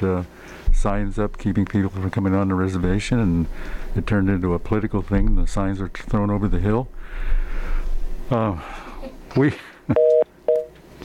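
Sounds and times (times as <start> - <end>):
speech: 0.0 - 10.2
telephone busy signal on a radio call-in line: 10.0 - 10.7.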